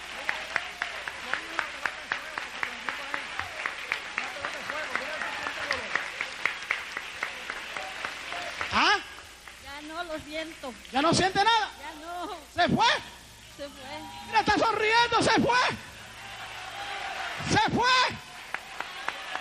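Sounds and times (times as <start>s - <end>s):
audience applause: 0.0s - 10.1s, 13.8s - 19.3s
speech: 10.2s - 15.9s, 17.4s - 18.2s
loud rising shout: 15.6s - 19.3s.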